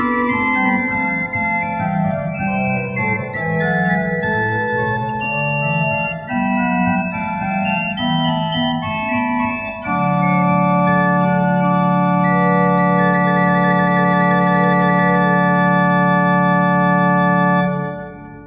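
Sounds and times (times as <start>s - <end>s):
pipe organ: 0.0s - 18.4s.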